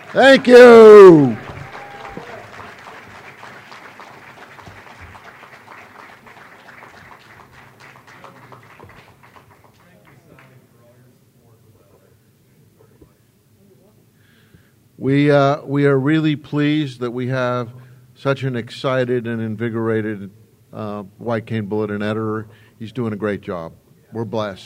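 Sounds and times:
audience applause: 0.0s - 10.6s
speech: 0.1s - 1.4s, 15.1s - 24.6s.

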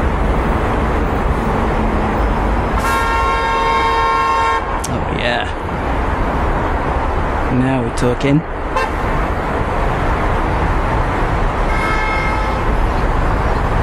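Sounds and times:
city traffic roar: 0.0s - 13.8s
car horn blaring: 2.8s - 4.8s, 8.7s - 9.0s, 11.6s - 12.8s
speech: 8.0s - 8.6s.

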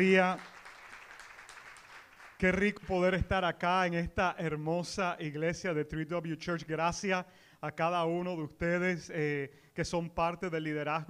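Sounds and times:
speech: 0.0s - 0.5s, 2.4s - 11.0s
audience applause: 0.0s - 2.8s.

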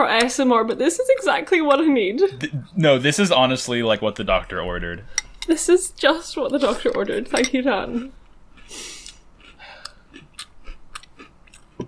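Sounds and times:
speech: 0.0s - 9.0s
crunchy chewing of generic Trix fruit cereal: 8.5s - 11.8s.

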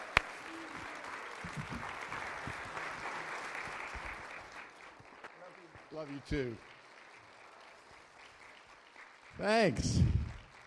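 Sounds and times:
congregation applauding to welcome a pastor at a ministry gathering: 0.0s - 10.6s
speech: 1.4s - 1.9s, 5.9s - 6.7s, 9.4s - 10.1s.

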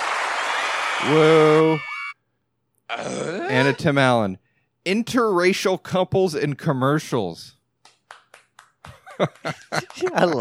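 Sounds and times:
speech: 1.0s - 1.9s, 2.9s - 7.6s, 8.8s - 10.3s
single person clapping: 7.8s - 10.3s
person laughing or snickering: 9.0s - 10.3s.

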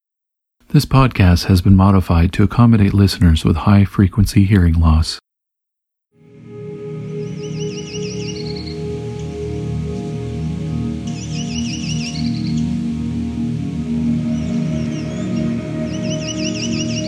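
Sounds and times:
speech: 0.7s - 5.2s
Myrtle Warbler singing: 6.5s - 17.0s.

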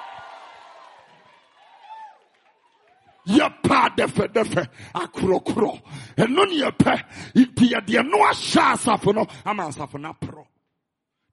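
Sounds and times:
audience screaming and cheering: 0.0s - 3.3s
speech: 3.2s - 10.5s.

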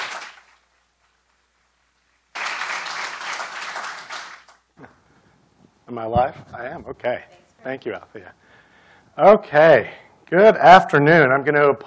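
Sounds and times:
audience applauding a speaker at a university lecture: 0.0s - 0.6s, 2.3s - 4.6s
speech: 5.9s - 8.4s, 9.2s - 11.8s.

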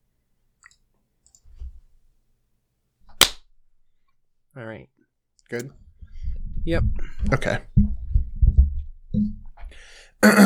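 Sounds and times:
sharp hand clap for recording sync: 3.2s - 3.4s
speech: 4.6s - 5.8s, 6.6s - 7.8s, 10.2s - 10.4s
soft low thumps: 5.8s - 9.8s.

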